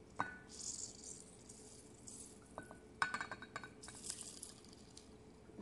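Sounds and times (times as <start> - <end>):
clinks and rattles as something is put back into a bowl: 0.1 - 5.4.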